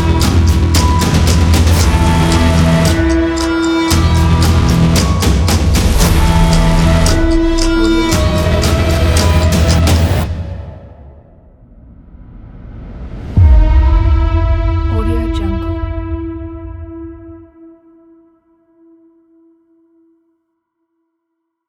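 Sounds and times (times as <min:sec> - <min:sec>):
horror trailer countdown: 0:00.0 - 0:11.1, 0:13.4 - 0:17.1.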